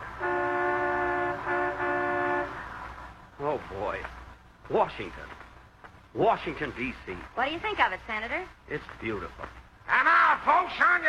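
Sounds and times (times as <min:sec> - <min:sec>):
sightseeing bus and traffic horns blaring: 0:00.0 - 0:02.8
street traffic rumble: 0:00.0 - 0:11.0
speech: 0:03.6 - 0:05.4, 0:06.1 - 0:11.0.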